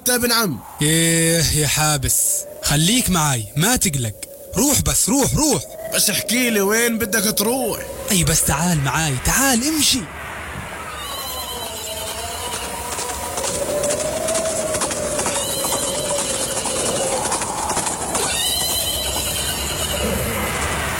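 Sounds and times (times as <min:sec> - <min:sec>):
speech: 0:00.0 - 0:10.2
thin high whistling tones: 0:00.0 - 0:20.9
two horses approaching with hooves clip-clopping: 0:11.6 - 0:20.2.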